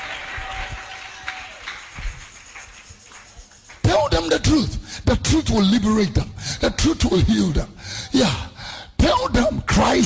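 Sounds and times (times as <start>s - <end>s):
audience clapping hands: 0.0s - 4.4s
speech: 4.2s - 10.0s.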